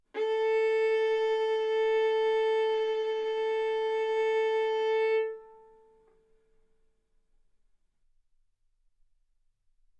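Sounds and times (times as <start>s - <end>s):
violin arco on A string: 0.2s - 6.1s.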